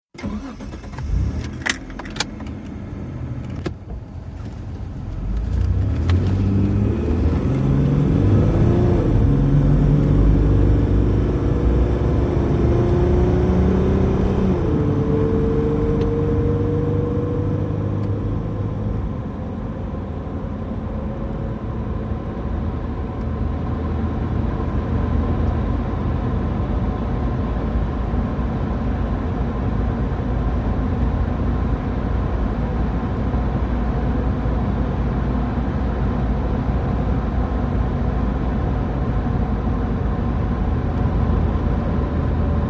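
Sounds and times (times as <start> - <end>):
1998 Mitsubishi Montero driving fast on a road: 0.2 - 42.6.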